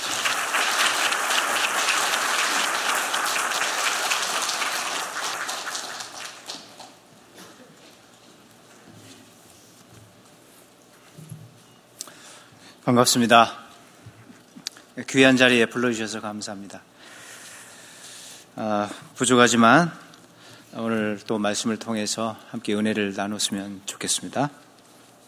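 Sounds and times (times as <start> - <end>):
audience applauding to welcome speaker: 0.0 - 7.0
speech: 12.9 - 13.6, 15.1 - 16.9, 18.6 - 20.0, 20.7 - 24.6.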